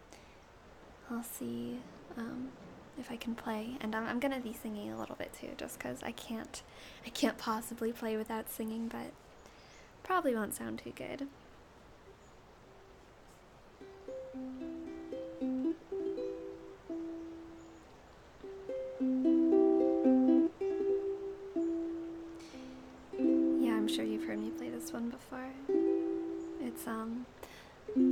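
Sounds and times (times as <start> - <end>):
rain: 0.0 - 7.4, 9.1 - 28.0
ukulele jamming: 13.8 - 17.8, 18.4 - 28.0.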